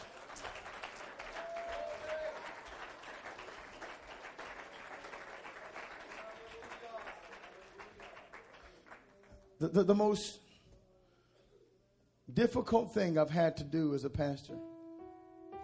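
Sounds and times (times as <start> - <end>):
audience clapping hands: 0.0 - 9.6
speech: 9.6 - 10.4, 12.4 - 14.7.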